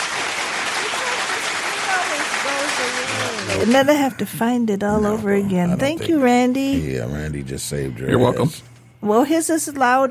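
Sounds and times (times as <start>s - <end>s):
steady applause from many hands clapping: 0.0s - 4.0s
speech: 2.0s - 10.0s.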